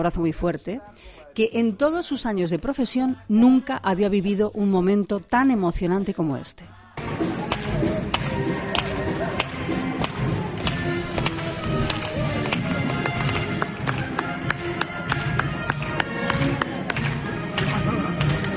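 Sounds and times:
speech: 0:00.0 - 0:07.3
soft timid applause from hospital patients: 0:07.0 - 0:18.5.

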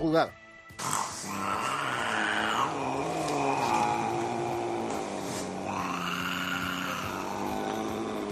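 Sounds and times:
cat growling yowl sounding like a motorbike: 0:00.8 - 0:08.3.

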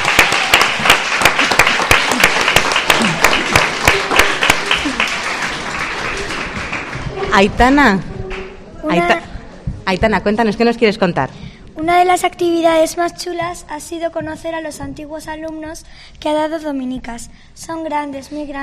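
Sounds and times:
audience applause: 0:00.0 - 0:09.2
speech: 0:07.3 - 0:08.1, 0:08.9 - 0:09.3, 0:09.9 - 0:18.6.

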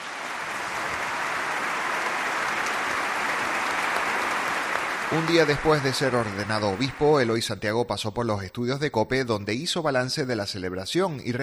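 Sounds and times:
audience applause: 0:00.0 - 0:07.4
speech: 0:05.1 - 0:11.4.

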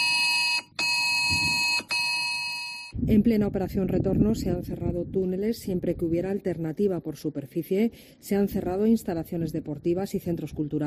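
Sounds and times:
emergency alert tone on mobile phones: 0:00.0 - 0:03.0
speech: 0:03.1 - 0:10.8.

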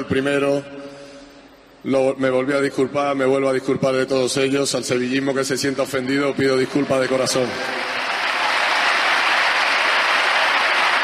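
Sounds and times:
speech: 0:00.0 - 0:00.9, 0:01.8 - 0:08.0
crowd applause: 0:06.2 - 0:11.0.

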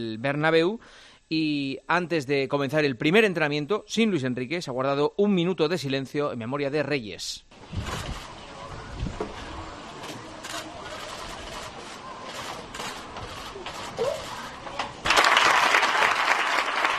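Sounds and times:
speech: 0:00.0 - 0:07.8
applause at training ground: 0:15.0 - 0:16.9.

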